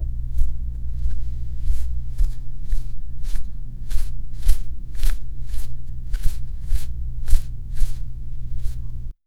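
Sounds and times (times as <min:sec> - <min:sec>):
small cloth plush toy being picked up: 0:00.4 - 0:08.9.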